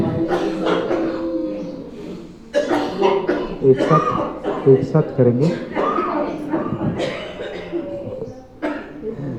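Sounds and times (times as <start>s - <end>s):
group voiced breathing or humming: 0.0s - 2.5s, 7.7s - 9.3s
laughter: 0.0s - 9.3s
people coughing during a breathing exercise in a yoga class: 0.0s - 9.3s
speech: 3.7s - 5.7s.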